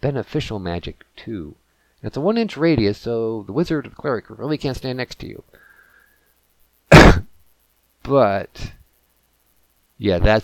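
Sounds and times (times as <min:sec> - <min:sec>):
speech: 0:00.0 - 0:05.6, 0:08.0 - 0:08.8, 0:10.0 - 0:10.4
cough: 0:06.9 - 0:07.3.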